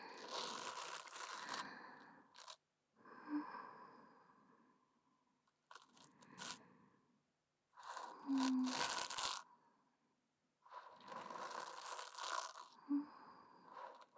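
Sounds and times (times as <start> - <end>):
soft brush brushing ears ASMR before sleep: 0.2 - 1.6, 5.7 - 6.6, 7.8 - 9.4, 10.8 - 12.8, 13.7 - 14.1.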